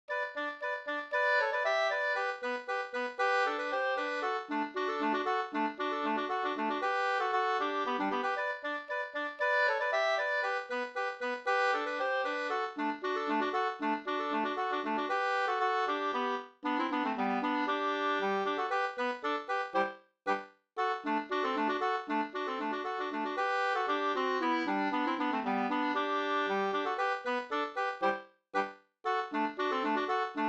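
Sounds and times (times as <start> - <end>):
polka music: 0.1 - 30.4.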